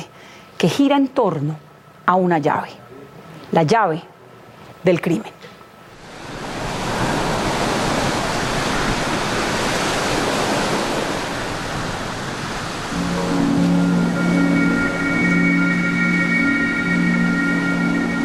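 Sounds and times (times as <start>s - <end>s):
speech: 0.6s - 2.8s, 3.5s - 4.1s, 4.8s - 5.4s
Caribbean sea waves: 6.0s - 18.2s
sustained musical tones: 12.9s - 18.2s.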